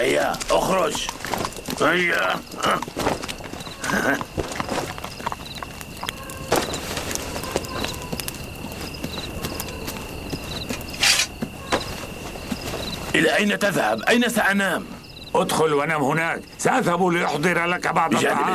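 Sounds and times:
speech: 0:00.0 - 0:04.9, 0:13.2 - 0:18.5
donkey's hooves clopping as it walks: 0:00.0 - 0:14.1.

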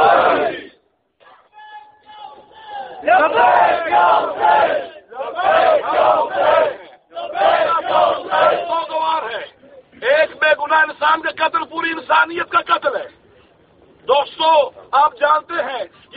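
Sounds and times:
crowd chanting a unison religious response: 0:00.0 - 0:00.8, 0:02.6 - 0:08.8
speech: 0:03.1 - 0:06.8, 0:10.2 - 0:13.2, 0:14.1 - 0:16.1.

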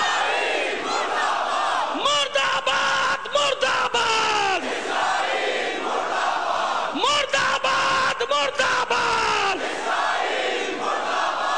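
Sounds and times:
large crowd chanting a slogan in unison answering a leader's call: 0:00.0 - 0:02.4, 0:03.0 - 0:07.6, 0:08.2 - 0:11.5
constant roar of the crowd: 0:00.0 - 0:11.5.

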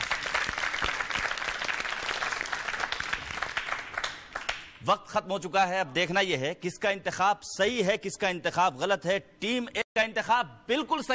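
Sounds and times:
loud sustained applause from a crowd: 0:00.0 - 0:04.6
speech: 0:04.8 - 0:11.1.

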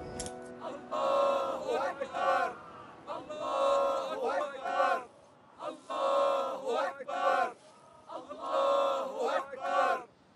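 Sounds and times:
crowd shouting slogans in unison in the street: 0:00.5 - 0:10.1.

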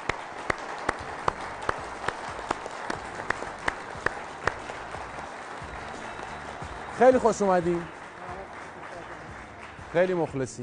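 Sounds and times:
audience applauding guests at the start of a talk show: 0:00.0 - 0:10.6
speech: 0:07.0 - 0:08.0, 0:09.9 - 0:10.6.

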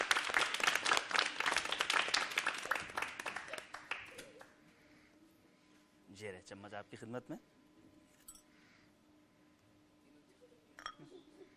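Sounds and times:
crowd applauding: 0:00.0 - 0:04.5
speech: 0:06.4 - 0:07.6.

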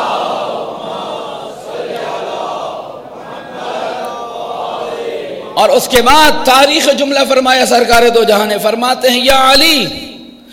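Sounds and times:
congregation reciting salawat on Muhammad: 0:00.0 - 0:05.7
speech: 0:05.6 - 0:10.0.

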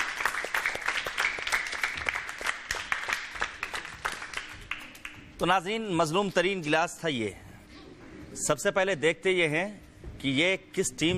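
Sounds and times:
scattered audience clapping for a contestant in a sherbet-tasting game show: 0:00.0 - 0:05.4
speech: 0:05.4 - 0:07.4, 0:08.4 - 0:11.1.

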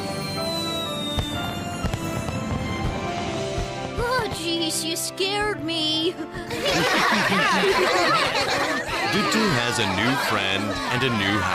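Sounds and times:
fireworks bursting: 0:00.8 - 0:05.6
speech: 0:04.7 - 0:11.5
laughter: 0:06.4 - 0:11.5.

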